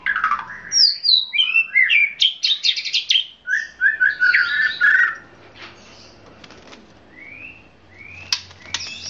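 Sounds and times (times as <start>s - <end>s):
Oriental magpie-robin song of varied whistles and scratchy notes: 0.0s - 5.2s, 7.1s - 9.0s.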